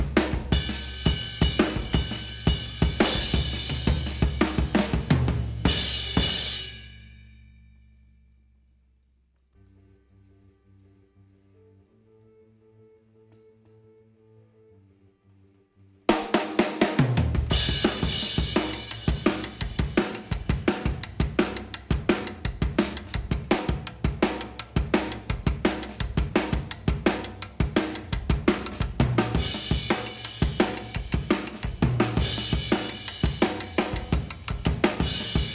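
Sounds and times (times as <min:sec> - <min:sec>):
drums: 0:00.0 - 0:07.2, 0:16.1 - 0:35.5.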